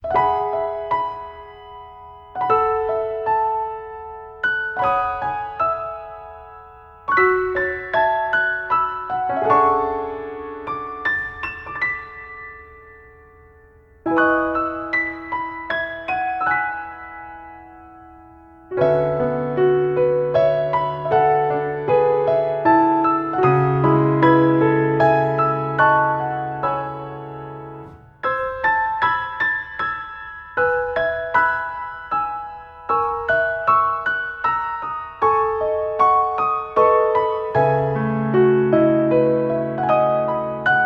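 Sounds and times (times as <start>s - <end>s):
gentle music: 0.0s - 40.8s.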